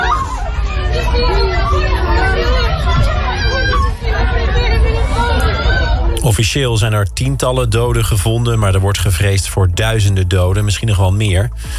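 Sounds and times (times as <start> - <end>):
people running in panic in the street: 0.0 - 6.2
speech: 6.3 - 11.7.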